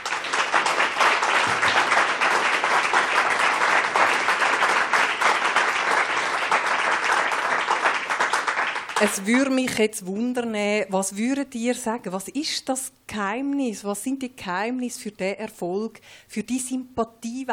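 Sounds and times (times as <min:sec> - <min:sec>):
audience applause: 0:00.0 - 0:09.3
speech: 0:09.0 - 0:17.5.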